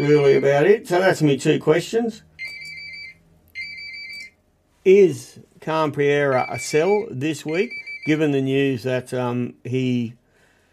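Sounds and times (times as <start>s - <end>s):
phone ringing: 0.0s - 0.8s, 2.4s - 4.4s, 6.3s - 8.3s
speech: 0.0s - 2.3s, 4.8s - 10.2s.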